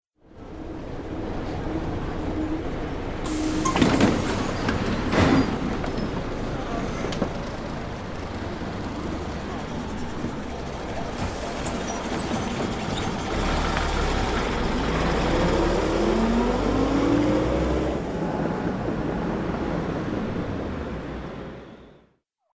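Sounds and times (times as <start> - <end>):
bus: 0.2 - 22.1.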